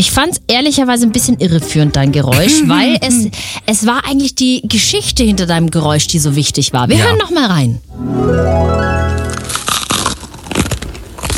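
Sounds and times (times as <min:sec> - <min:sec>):
speech: 0:00.0 - 0:09.4
crunchy chewing of crisp breakfast food: 0:09.2 - 0:11.3.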